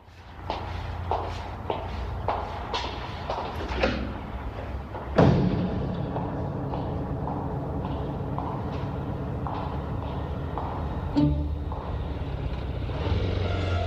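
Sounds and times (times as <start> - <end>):
footsteps walking away: 0.0 - 13.7
low hum: 4.4 - 12.6.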